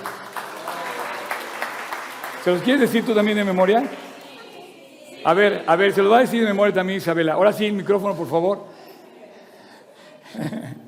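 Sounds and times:
group clapping: 0:00.0 - 0:04.8
speech: 0:02.4 - 0:04.1, 0:05.2 - 0:08.7
laughter: 0:09.0 - 0:10.8.

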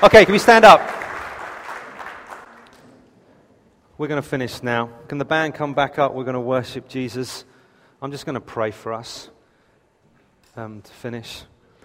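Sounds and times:
speech: 0:00.0 - 0:00.9, 0:04.0 - 0:09.4, 0:10.6 - 0:11.5
audience clapping: 0:00.0 - 0:02.9.

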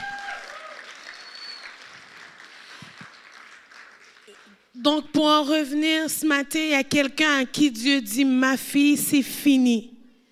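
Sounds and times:
high cheers: 0:00.0 - 0:01.9
audience applauding: 0:00.0 - 0:04.7
speech: 0:04.8 - 0:09.9.

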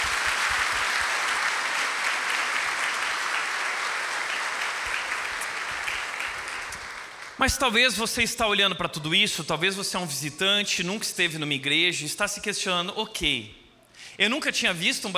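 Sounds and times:
crowd applause: 0:00.0 - 0:07.6
speech: 0:07.4 - 0:13.6, 0:14.2 - 0:15.1.

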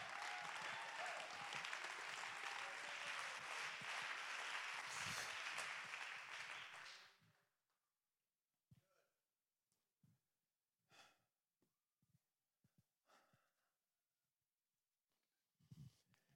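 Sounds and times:
audience clapping hands: 0:00.0 - 0:07.1.

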